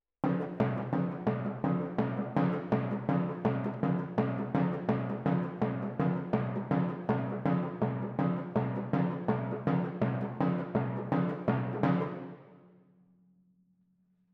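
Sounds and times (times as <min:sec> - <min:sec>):
timpani in F: 0:00.2 - 0:12.5.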